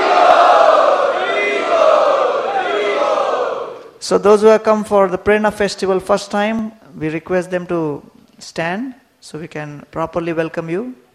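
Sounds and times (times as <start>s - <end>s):
audience at a monthly festival evening loudly chanting to welcome a guest: 0.0s - 4.0s
speech: 4.1s - 11.0s.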